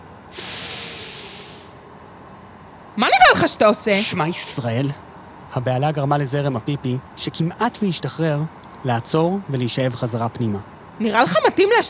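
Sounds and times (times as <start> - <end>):
inhaler puff beside a wall among gas cylinders: 0.3 - 1.8
speech: 3.0 - 11.8.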